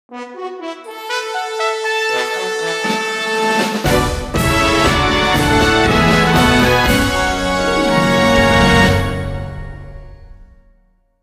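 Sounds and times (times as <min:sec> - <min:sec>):
music at an event: 0:00.1 - 0:11.2.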